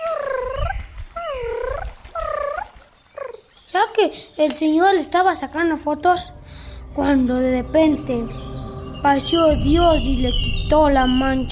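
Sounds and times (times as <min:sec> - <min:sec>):
voice imitating a screaming bird: 0:00.0 - 0:03.5
speech: 0:04.0 - 0:06.4, 0:07.0 - 0:11.5.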